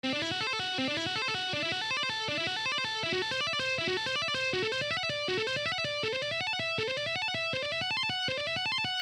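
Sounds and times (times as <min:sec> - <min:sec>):
guitar licks in A minor sixth: 0:00.0 - 0:09.0.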